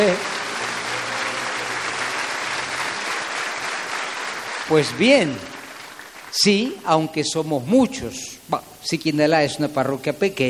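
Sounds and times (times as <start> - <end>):
audience applause: 0.0 - 7.1
speech: 4.7 - 5.5, 6.3 - 10.4.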